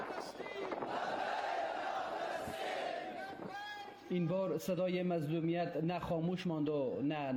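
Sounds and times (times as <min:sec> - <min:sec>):
large crowd chanting protest slogans in unison: 0:00.0 - 0:03.5
speech: 0:04.1 - 0:07.3.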